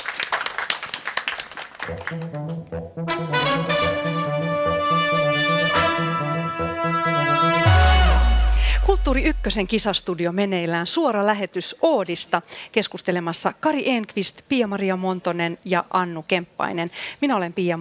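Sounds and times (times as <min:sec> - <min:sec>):
small group applauding: 0:00.0 - 0:02.7
speech: 0:01.8 - 0:06.2, 0:08.8 - 0:17.8
musical jingle of sustained tones: 0:01.9 - 0:10.0
deep low boom: 0:07.7 - 0:10.1.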